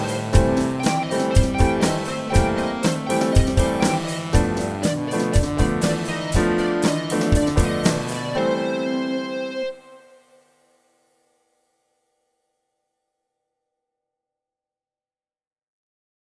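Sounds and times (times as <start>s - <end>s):
MIDI blues music: 0.0s - 9.8s.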